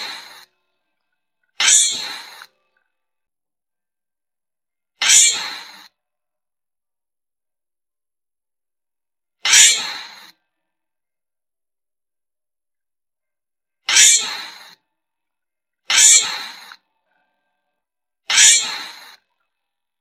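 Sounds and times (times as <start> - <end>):
giant flying squirrel screaming: 1.6 - 2.4, 5.0 - 5.9, 9.4 - 10.3, 13.9 - 14.7, 15.9 - 16.7, 18.3 - 19.1.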